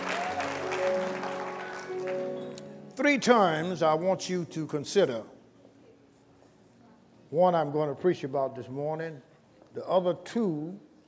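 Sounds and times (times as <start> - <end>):
church congregation clapping: 0.0 - 2.8
speech: 3.0 - 5.3, 7.3 - 10.9.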